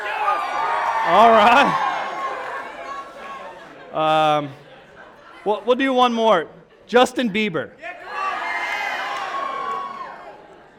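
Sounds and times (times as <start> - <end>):
crowd cheering with many male voices: 0.0 - 3.9, 7.8 - 10.7
speech: 1.0 - 1.8, 3.9 - 4.6, 5.4 - 7.8.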